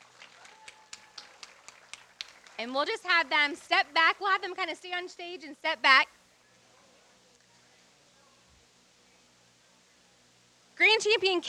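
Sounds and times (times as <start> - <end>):
audience applause: 0.0 - 2.7
speech: 2.6 - 6.2, 11.0 - 11.4.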